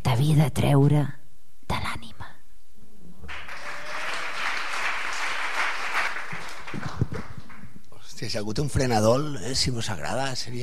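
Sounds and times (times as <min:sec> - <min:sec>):
speech: 0:00.2 - 0:01.8, 0:08.2 - 0:10.6
audience applause: 0:03.2 - 0:07.7.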